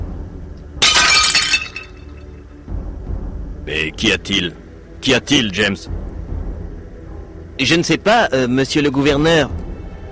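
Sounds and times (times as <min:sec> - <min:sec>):
dinner plate shattering: 0:00.8 - 0:02.2
speech: 0:03.7 - 0:06.0, 0:07.6 - 0:09.6.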